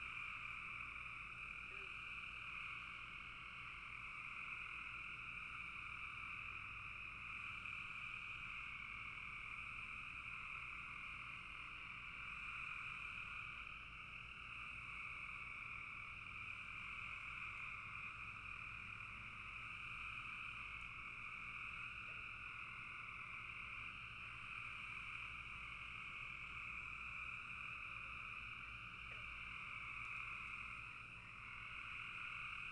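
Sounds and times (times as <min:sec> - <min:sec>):
frogs trilling chorus: 0:00.0 - 0:32.7.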